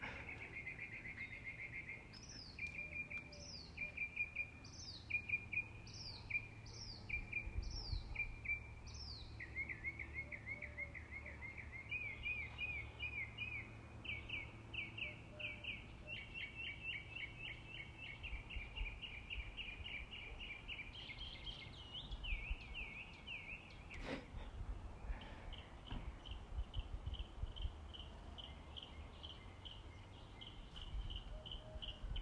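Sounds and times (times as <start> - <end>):
birds singing in fast high trills: 0.0 - 32.1.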